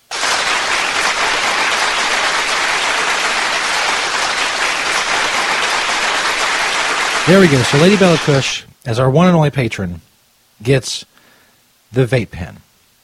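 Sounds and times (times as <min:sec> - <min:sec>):
applause sound effect: 0:00.0 - 0:08.6
speech: 0:07.3 - 0:11.1, 0:11.9 - 0:12.6.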